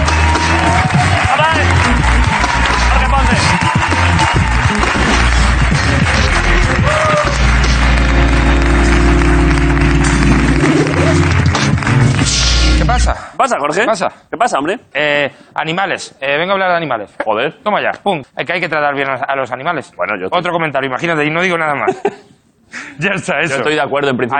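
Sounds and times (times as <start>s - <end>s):
audience applause for arriving guest: 0.0s - 12.8s
speech: 13.7s - 24.3s.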